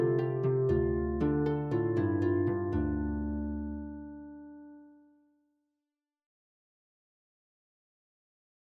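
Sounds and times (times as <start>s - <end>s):
harp: 0.0s - 5.0s.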